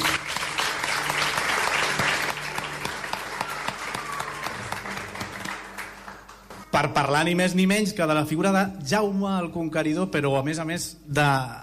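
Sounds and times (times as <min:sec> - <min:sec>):
live audience applauding: 0:00.0 - 0:06.9
speech: 0:06.8 - 0:11.6.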